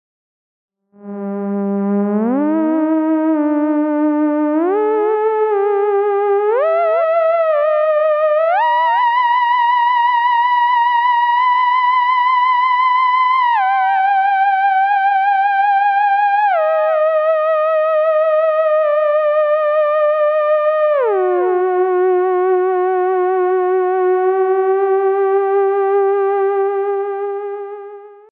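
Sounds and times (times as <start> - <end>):
theremin: 1.0 - 28.3.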